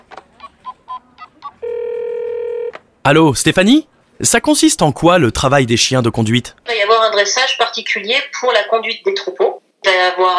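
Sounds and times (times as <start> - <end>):
long steady buzzing phone ring tone: 0.6 - 2.8
speech: 3.1 - 10.3.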